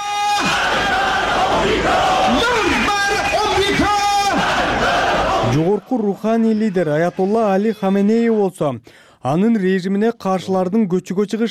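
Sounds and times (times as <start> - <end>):
crowd chanting anti-US slogans at state-organised demonstration in Iran: 0.4 - 5.8
speech: 5.6 - 11.4.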